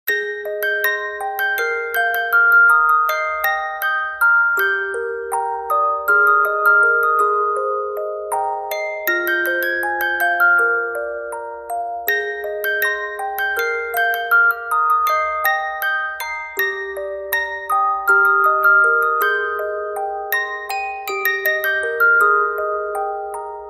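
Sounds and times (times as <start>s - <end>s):
music box: 0.1s - 23.6s.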